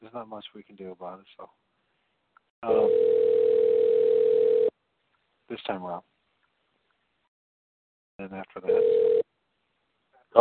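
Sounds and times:
speech: 0.1 - 1.7, 2.6 - 3.3, 5.5 - 6.1, 8.2 - 9.2
telephone dial tone while calling someone: 2.8 - 4.7, 8.8 - 9.2.

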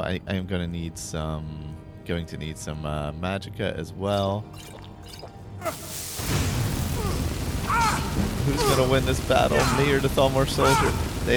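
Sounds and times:
speech: 0.0 - 11.3
flames spell blasting a Thalmor soldier in a video game: 5.7 - 11.3.

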